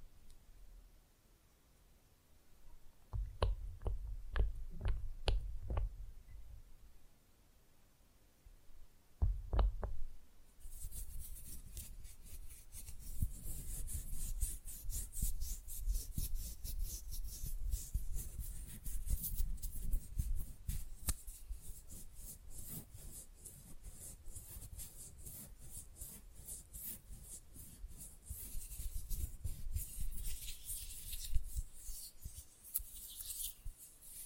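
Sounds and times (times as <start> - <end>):
tapping: 3.1 - 5.9, 9.2 - 10.0
fast and rough nail filing during a manicure: 10.7 - 34.2.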